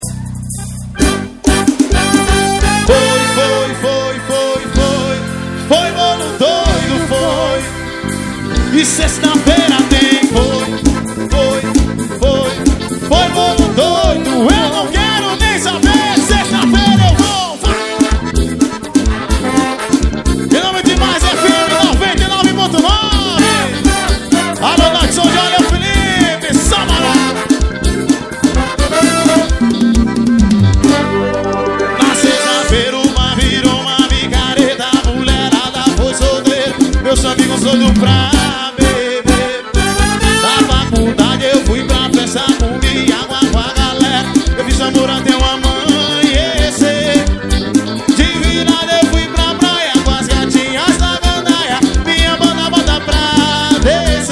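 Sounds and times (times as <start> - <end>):
forró music: 0.0 - 54.3.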